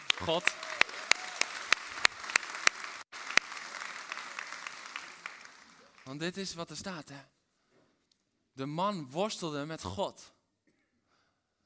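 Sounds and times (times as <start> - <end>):
audience applause: 0.0 - 6.2
speech: 0.2 - 0.6, 6.1 - 7.4, 8.6 - 10.4.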